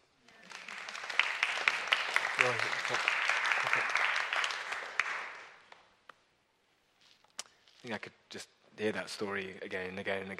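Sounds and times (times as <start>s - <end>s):
audience clapping: 0.3s - 6.2s
speech: 2.4s - 3.1s, 7.9s - 10.3s.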